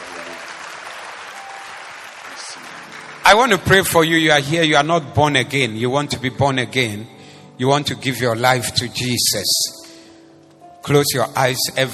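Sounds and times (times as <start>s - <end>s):
audience clapping: 0.0s - 4.3s
speech: 3.3s - 9.8s, 10.8s - 11.9s.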